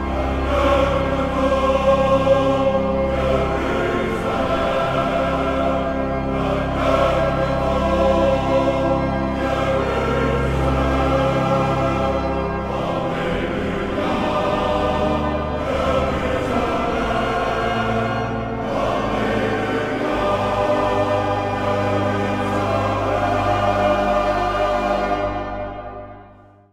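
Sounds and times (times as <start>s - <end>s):
Easter intrada: 0.1s - 25.8s.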